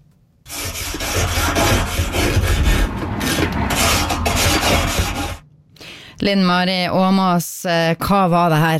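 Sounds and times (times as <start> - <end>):
stiff brush scrubbing a grill by hand: 0.5 - 5.4
speech: 6.2 - 8.7.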